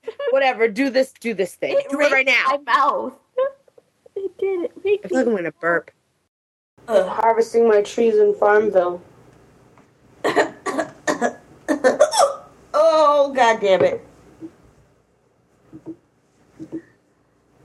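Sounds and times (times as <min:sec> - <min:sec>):
speech: 0:00.4 - 0:03.2, 0:04.4 - 0:06.0, 0:06.9 - 0:09.1, 0:13.1 - 0:14.6
hiccups: 0:10.6 - 0:12.6.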